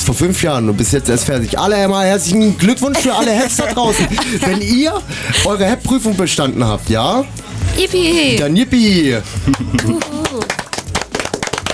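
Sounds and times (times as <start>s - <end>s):
speech: 0.1s - 10.2s
laughter: 2.6s - 5.8s, 9.4s - 10.6s
hand claps applauding midwives who finished their training: 9.4s - 11.7s.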